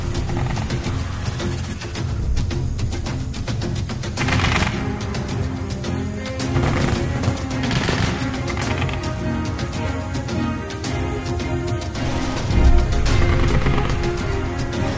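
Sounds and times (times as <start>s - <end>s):
constant low dense roar: 0.0s - 14.9s
distant gunshots from a battlefront at night: 6.6s - 8.6s.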